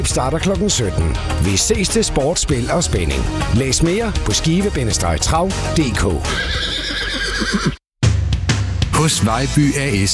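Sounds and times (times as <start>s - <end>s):
speech: 0.0s - 7.8s, 9.0s - 10.1s
horse neighing in a harness racing advert: 6.3s - 7.8s.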